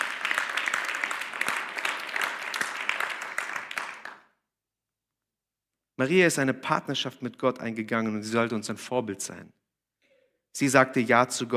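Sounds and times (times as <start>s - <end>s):
audience applause: 0.0s - 4.2s
speech: 6.0s - 9.6s, 10.6s - 11.5s.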